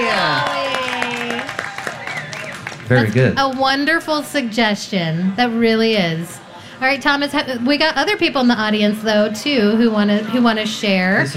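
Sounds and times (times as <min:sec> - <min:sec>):
audience cheering for a singer: 0:00.0 - 0:03.3
scattered clapping: 0:00.0 - 0:04.4
speech: 0:02.9 - 0:11.3.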